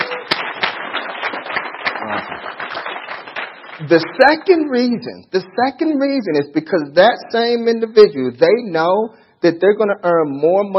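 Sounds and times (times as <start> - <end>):
audience applause: 0.0 - 4.4
speech: 3.8 - 10.7.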